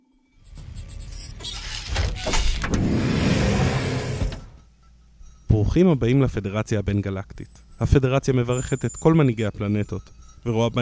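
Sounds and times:
sci-fi door sliding open with motor hum: 0:01.2 - 0:04.6
speech: 0:05.7 - 0:10.8.

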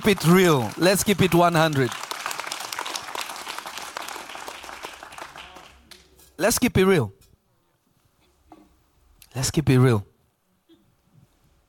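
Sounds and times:
speech: 0:00.0 - 0:02.0, 0:06.4 - 0:07.2, 0:09.3 - 0:10.1
audience clapping: 0:00.0 - 0:06.2.

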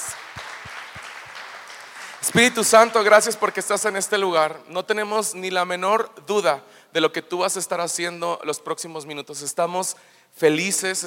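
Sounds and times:
audience applause: 0:00.0 - 0:03.7
speech: 0:02.2 - 0:11.0.

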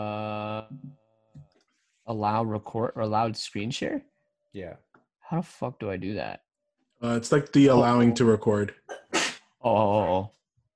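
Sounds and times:
speech: 0:02.1 - 0:06.4, 0:07.0 - 0:08.8, 0:09.6 - 0:10.4
sneeze: 0:09.0 - 0:09.5.

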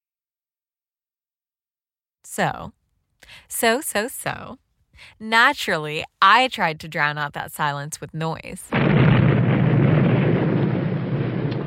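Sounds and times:
speech: 0:02.2 - 0:09.1
dynamite explosion rumble: 0:08.7 - 0:11.6.

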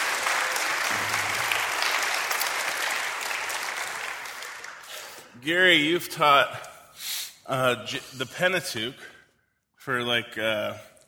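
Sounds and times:
audience applause: 0:00.0 - 0:05.3
speech: 0:05.4 - 0:09.1, 0:09.8 - 0:10.9.

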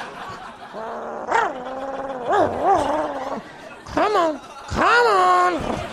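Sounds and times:
laughter: 0:00.0 - 0:05.9
collie dog whining growl: 0:00.4 - 0:05.0
speech: 0:04.1 - 0:05.9.

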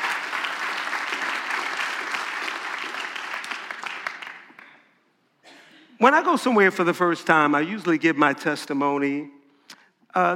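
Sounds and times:
audience clapping hands: 0:00.0 - 0:04.9
speech: 0:06.0 - 0:09.4, 0:10.1 - 0:10.3.

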